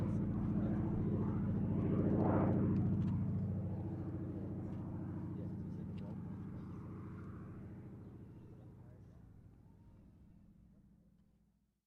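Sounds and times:
CAC CA-25 Winjeel fighter trainer aircraft passing: 0.0s - 9.0s.

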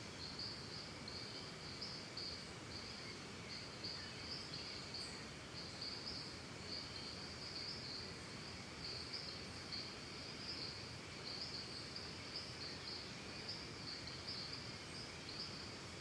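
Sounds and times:
crickets chirping in a Costa Rica forest: 0.0s - 15.9s.

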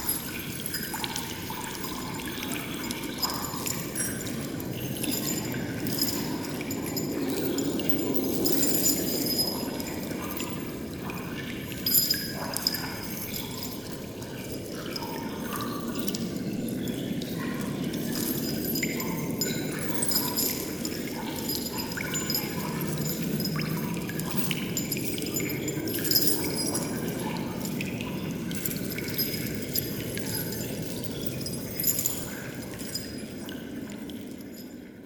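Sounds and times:
dungeon chains rattling: 0.0s - 10.9s, 11.7s - 14.6s, 18.0s - 33.5s
water drips in a dungeon: 0.0s - 34.6s
wind in a dungeon: 0.0s - 35.0s.

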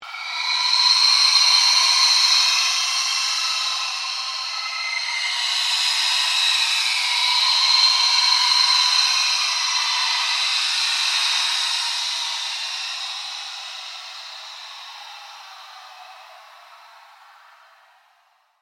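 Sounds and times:
ghostly chatter: 0.0s - 17.9s
ambient drone: 0.0s - 18.4s
scream: 0.0s - 18.4s.

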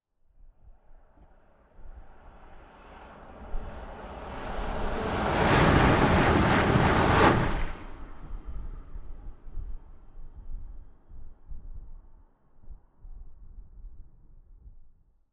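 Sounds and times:
short Eurostar high speed train passing at medium speed: 2.6s - 9.2s.

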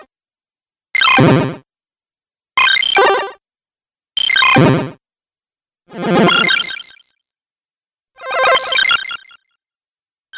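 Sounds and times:
retro random bleep accent sounds: 1.0s - 1.6s, 4.2s - 4.9s, 6.0s - 7.0s, 8.6s - 9.4s.

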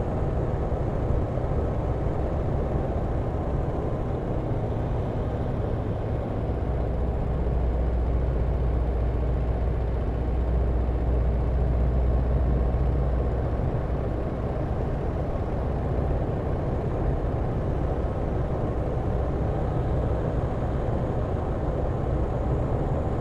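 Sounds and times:
1916 Sopwith Pup replica aircraft flying, interior: 0.0s - 23.2s.

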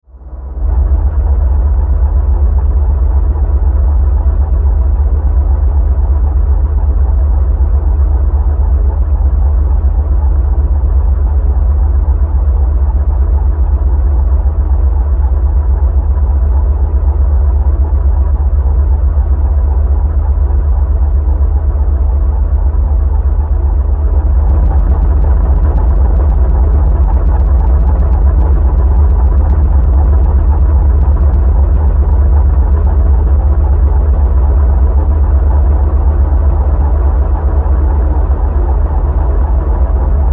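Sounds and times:
low industrial rumble: 0.0s - 40.3s
static crackle: 24.2s - 33.8s.

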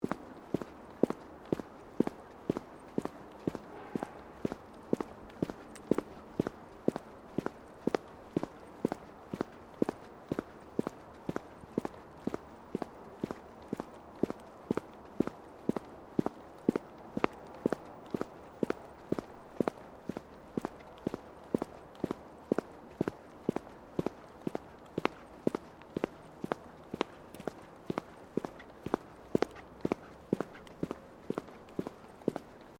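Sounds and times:
footsteps of women's low boots on concrete: 0.0s - 32.7s.

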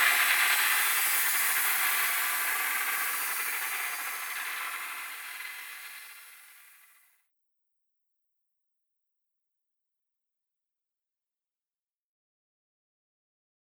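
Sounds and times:
frightening drone: 0.0s - 6.8s.

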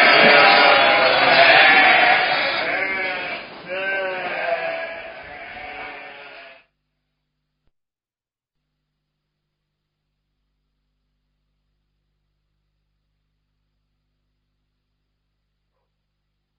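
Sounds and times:
sheep bleating: 0.0s - 6.7s.

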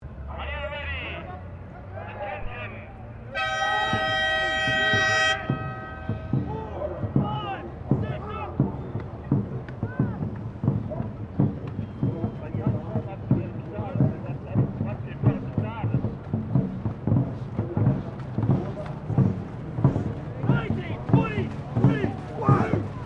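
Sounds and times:
dragon boat race: 0.0s - 23.0s.

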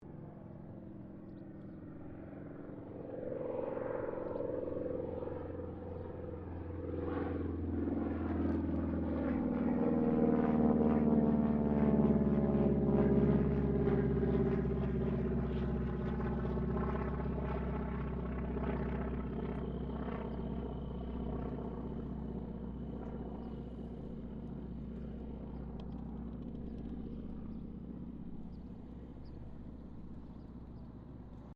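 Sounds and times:
distant AT-6D Harvard Mk III aircraft passing: 0.0s - 31.5s.

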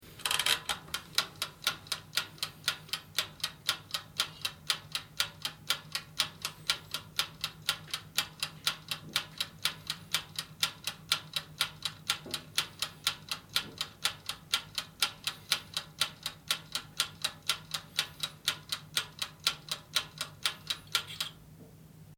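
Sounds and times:
mechanical clock or watch ticking: 0.7s - 21.4s.

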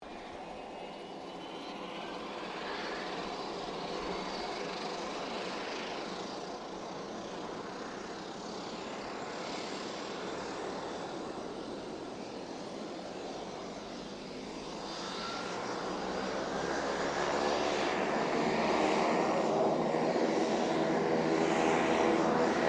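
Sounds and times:
distant King Air 350 aircraft starting up: 0.1s - 22.6s.

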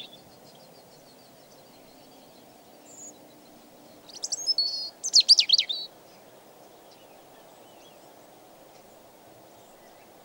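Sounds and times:
European robin song of high wavering whistles: 0.0s - 10.2s.

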